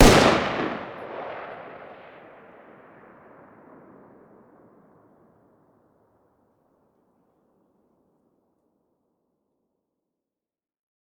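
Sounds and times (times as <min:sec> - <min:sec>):
distant 5.56x45 machine gun fire outdoors: 0:00.0 - 0:02.0.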